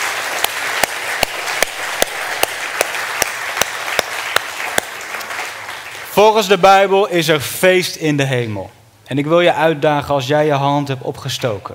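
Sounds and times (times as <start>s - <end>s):
audience applauding: 0.0s - 6.5s
speech: 6.2s - 11.7s.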